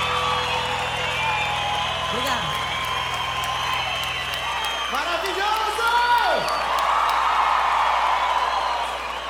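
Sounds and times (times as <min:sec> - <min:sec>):
audience clapping: 0:00.0 - 0:09.2.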